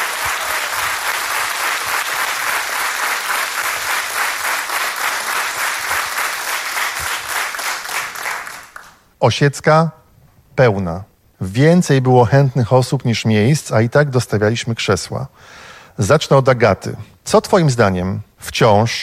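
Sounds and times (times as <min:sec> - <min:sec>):
audience applause: 0:00.0 - 0:09.0
speech: 0:09.2 - 0:10.0, 0:10.6 - 0:19.0.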